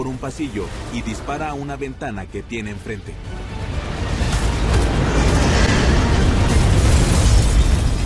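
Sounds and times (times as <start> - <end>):
speech: 0.0 - 3.4
fireball explosion: 4.2 - 8.0.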